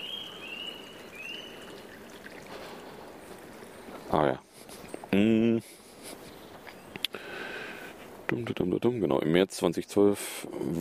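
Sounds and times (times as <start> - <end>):
water splashing and babbling: 0.0 - 4.9
speech: 5.2 - 5.8, 8.4 - 10.7.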